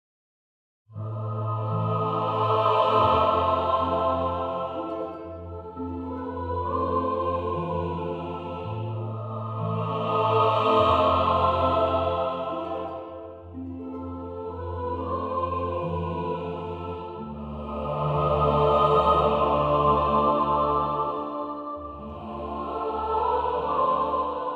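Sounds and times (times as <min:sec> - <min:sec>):
choir singing: 0:01.0 - 0:24.5.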